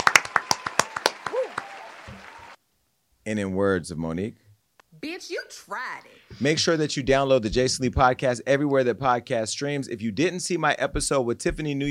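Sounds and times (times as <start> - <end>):
round of applause: 0.0 - 2.6
speech: 3.2 - 4.4, 5.0 - 11.8.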